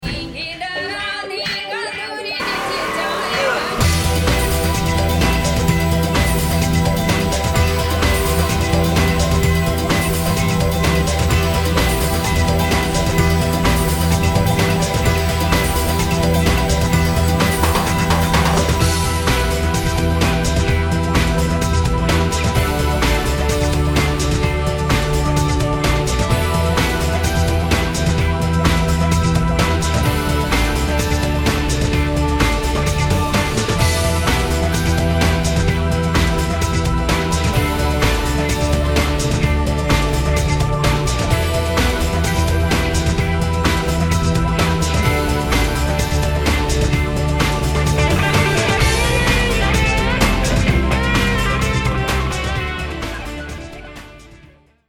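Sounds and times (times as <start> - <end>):
funk music: 0.0 - 54.8.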